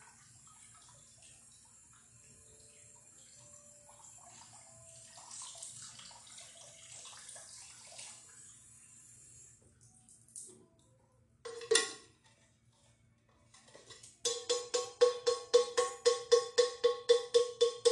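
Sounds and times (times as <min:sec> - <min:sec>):
banging on a metal thermos: 0:11.5 - 0:12.1, 0:13.6 - 0:17.8.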